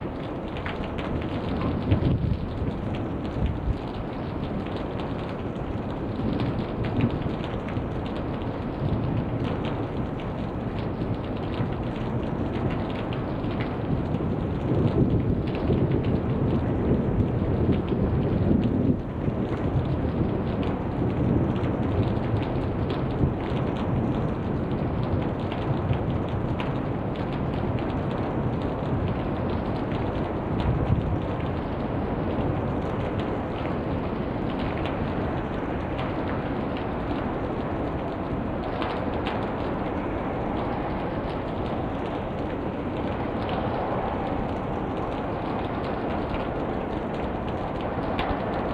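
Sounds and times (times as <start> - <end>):
rain: 0.0 - 48.7.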